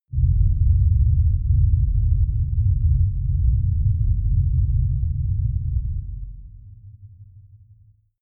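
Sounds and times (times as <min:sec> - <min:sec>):
avalanche rumble: 0:00.2 - 0:06.7.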